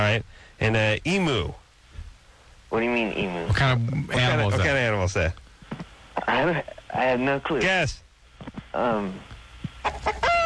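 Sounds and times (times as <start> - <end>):
speech: 0.0 - 1.6, 2.7 - 5.4, 6.3 - 8.0, 8.7 - 10.4
chicken clucking and squawking: 9.8 - 10.4.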